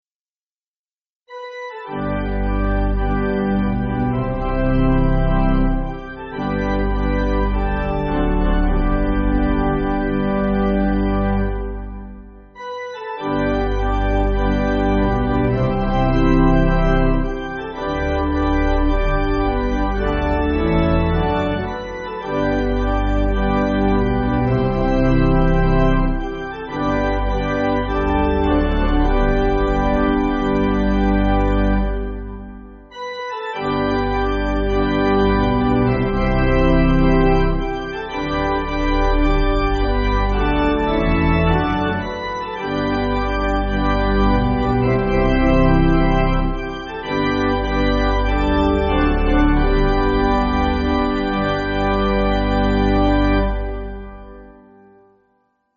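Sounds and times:
pipe organ church music: 1.3s - 54.9s.

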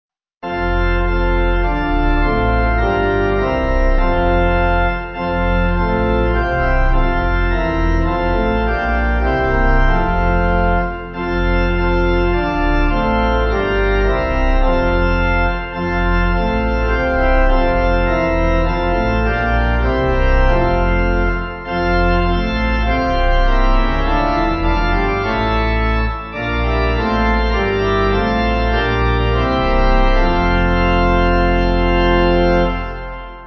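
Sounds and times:
church pipe organ backing music: 0.4s - 33.4s.

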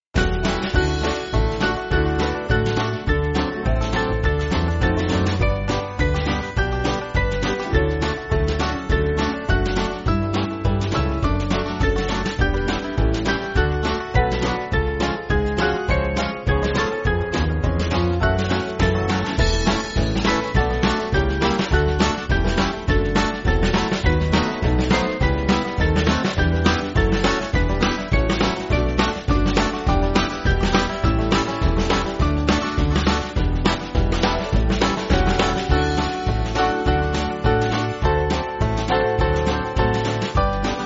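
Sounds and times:
band backing music: 0.1s - 40.8s.

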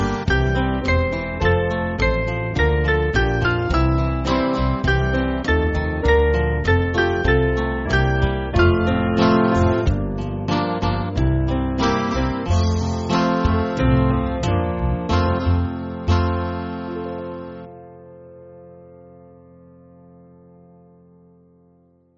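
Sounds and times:
band playing church music: 0.0s - 17.7s.

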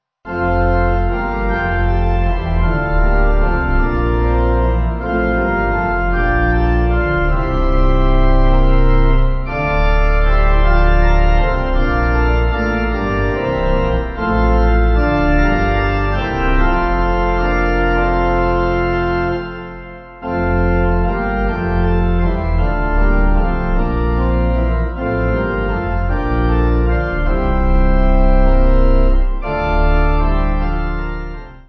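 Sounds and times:
church pipe organ backing music: 0.3s - 31.6s.

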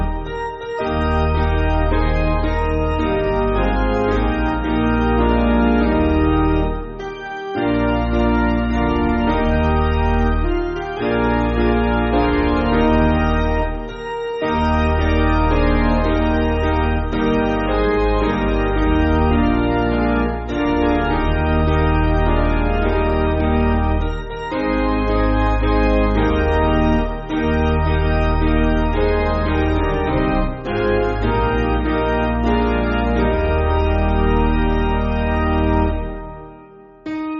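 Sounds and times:
piano: 0.0s - 37.3s.

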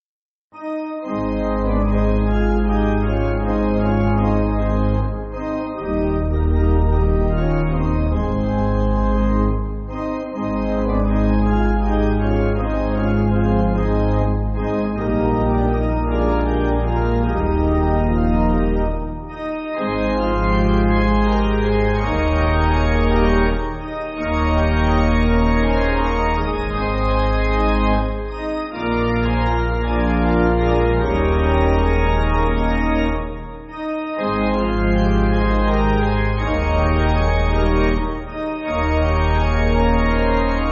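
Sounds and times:
church pipe organ backing: 0.6s - 40.7s.

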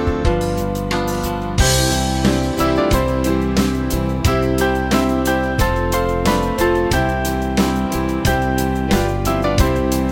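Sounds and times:
Chinese band playing: 0.1s - 10.1s.

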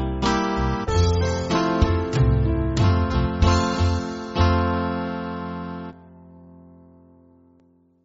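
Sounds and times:
church band backing music: 0.0s - 5.9s.

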